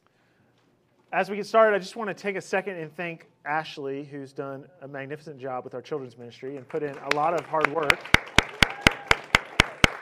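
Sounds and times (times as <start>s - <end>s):
speech: 1.1s - 8.3s
hand claps: 6.7s - 10.0s.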